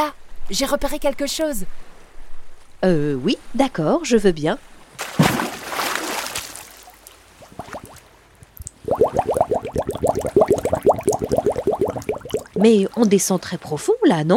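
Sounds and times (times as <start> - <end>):
speech: 0.0 - 1.9, 2.8 - 5.2, 12.6 - 14.3
water splashing as a reptile dives underwater: 5.0 - 13.6
rapid bubbling gurgles underwater: 7.0 - 13.3.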